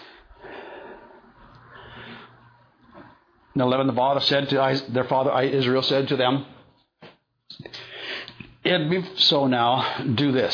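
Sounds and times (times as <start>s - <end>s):
speaker pausing mid-talk to take a breath: 0.0s - 2.5s, 7.7s - 8.4s
speech: 3.6s - 6.5s, 8.7s - 10.5s.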